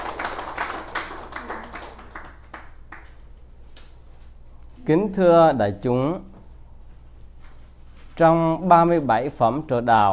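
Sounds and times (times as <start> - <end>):
audience applause at a Buddhist dharma talk: 0.0 - 3.1
speech: 4.8 - 6.3, 8.2 - 10.1.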